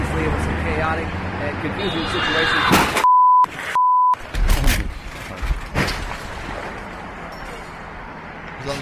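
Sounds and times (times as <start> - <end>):
speech: 0.8 - 3.0, 8.7 - 8.8
car accident near roadside reporter: 2.1 - 6.6.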